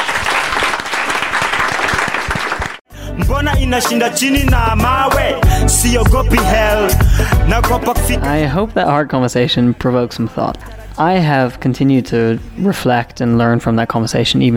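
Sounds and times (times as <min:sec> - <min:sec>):
audience applause: 0:00.0 - 0:02.8
speech: 0:03.4 - 0:14.5.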